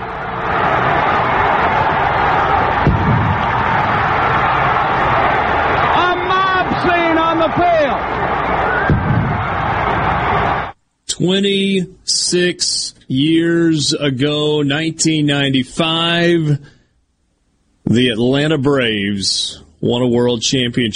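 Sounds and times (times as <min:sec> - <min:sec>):
stadium crowd cheering after championship win: 0:00.0 - 0:10.8
crowd whoops and whistles: 0:08.6 - 0:09.1
speech: 0:11.2 - 0:16.8, 0:17.9 - 0:20.9.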